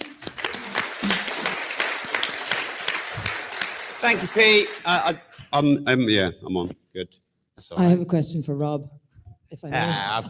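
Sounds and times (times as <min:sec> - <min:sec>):
audience applause: 0:00.0 - 0:05.5
speech: 0:04.0 - 0:10.2.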